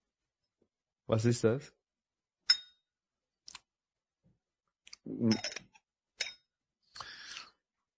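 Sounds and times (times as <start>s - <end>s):
speech: 1.1s - 1.8s, 5.2s - 5.6s
small glass lid clinking against a whisky nosing glass: 5.3s - 5.6s.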